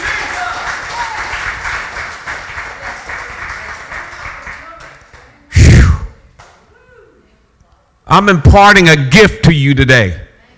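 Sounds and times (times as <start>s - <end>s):
audience clapping hands: 0.0s - 5.5s
faint murmur of voices: 0.0s - 10.5s
speech: 8.1s - 10.2s.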